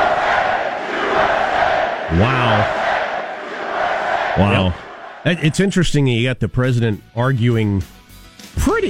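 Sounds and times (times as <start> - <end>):
big arena crowd cheering: 0.0 - 5.8
speech: 2.2 - 2.8, 4.4 - 8.8.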